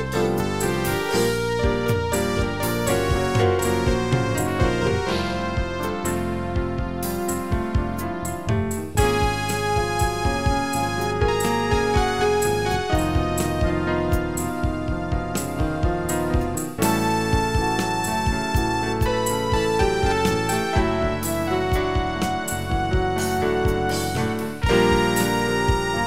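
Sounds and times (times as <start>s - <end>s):
bossa nova song with musical saw lead: 0.0s - 26.0s.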